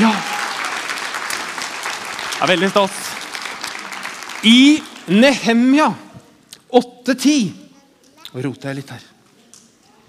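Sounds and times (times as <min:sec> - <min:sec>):
audience applause: 0:00.0 - 0:05.6
speech: 0:02.4 - 0:03.2, 0:04.4 - 0:06.0, 0:06.7 - 0:07.6, 0:08.3 - 0:09.1.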